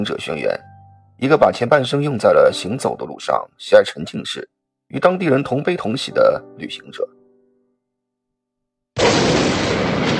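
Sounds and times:
speech: 0.0s - 7.2s
explosion sound effect: 9.0s - 10.1s.

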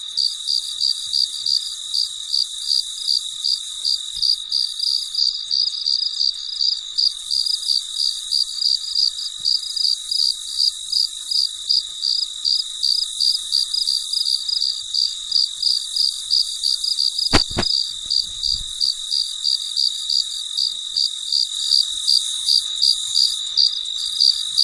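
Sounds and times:
cricket chirping: 0.0s - 24.6s
high insect hum: 0.1s - 24.6s
sharp clicks: 17.3s - 17.7s.

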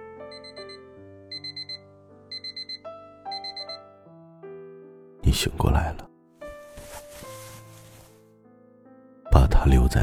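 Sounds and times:
alarm clock ringing: 0.3s - 3.8s
speech: 5.3s - 6.0s, 9.8s - 10.0s.

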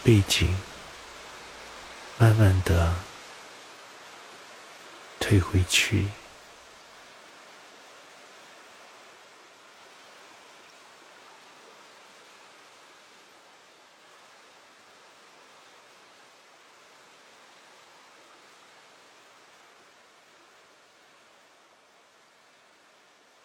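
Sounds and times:
speech: 0.0s - 0.7s, 2.2s - 3.1s, 5.3s - 6.2s
waterfall's steady continuous rush of water: 0.0s - 3.2s, 5.2s - 6.3s.

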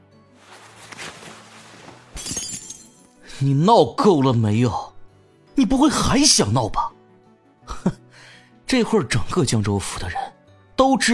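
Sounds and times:
teacup smashed on the floor: 2.1s - 3.2s
speech: 3.4s - 4.9s, 5.6s - 6.9s, 8.7s - 11.1s.

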